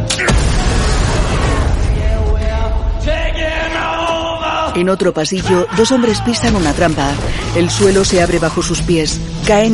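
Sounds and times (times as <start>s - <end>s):
film-effect explosive detonating in a tunnel: 0.1s - 4.5s
speech: 4.8s - 9.7s.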